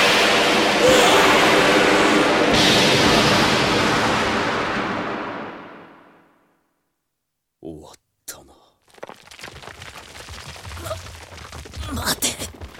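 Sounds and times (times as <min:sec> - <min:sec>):
magical lightning strike explosion: 0:00.0 - 0:06.4.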